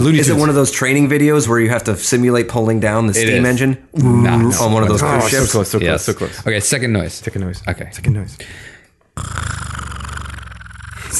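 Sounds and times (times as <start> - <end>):
speech: 0.0 - 9.5
person imitating snoring: 9.2 - 11.1.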